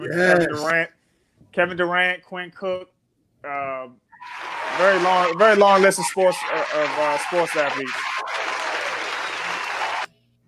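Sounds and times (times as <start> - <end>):
speech: 0.0 - 1.0, 1.6 - 8.1
applause: 4.2 - 10.1.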